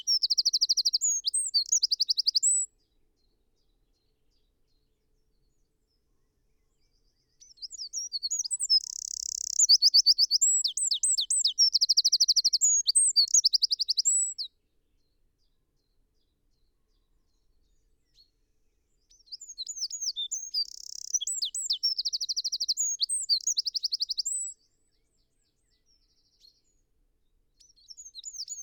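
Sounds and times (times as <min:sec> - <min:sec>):
Eurasian wren song of rapid ringing trills: 0:00.0 - 0:02.7, 0:07.4 - 0:14.5, 0:19.1 - 0:24.6, 0:27.6 - 0:28.6.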